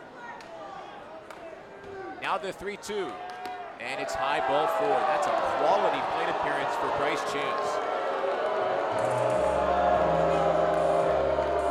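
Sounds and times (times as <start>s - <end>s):
speech: 2.3s - 7.9s
large stadium crowd booing: 4.0s - 11.6s.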